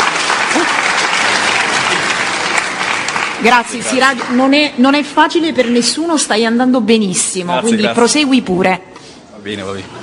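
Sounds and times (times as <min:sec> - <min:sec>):
audience applause of encouragement: 0:00.0 - 0:04.7
speech: 0:03.4 - 0:10.0.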